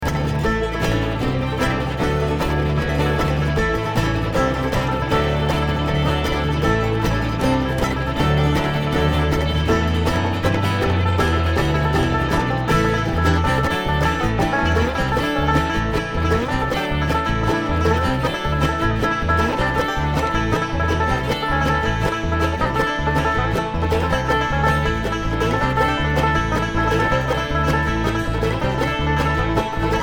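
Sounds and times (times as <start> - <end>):
traffic jam: 0.0 - 30.0.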